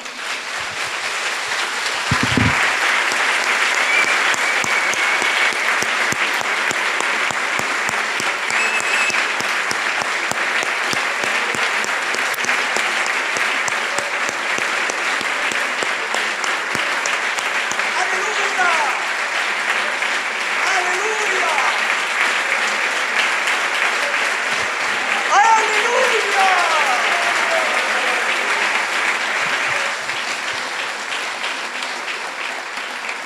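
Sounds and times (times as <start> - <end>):
audience applause: 0.0 - 33.2.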